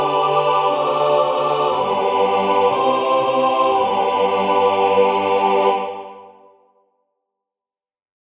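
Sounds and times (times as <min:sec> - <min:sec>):
ensemble playing tutti: 0:00.0 - 0:06.3.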